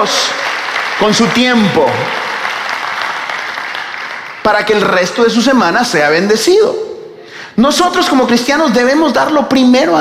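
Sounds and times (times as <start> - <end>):
speech: 0.0 - 2.2, 4.4 - 6.8, 7.6 - 9.9
audience applause: 0.0 - 5.0.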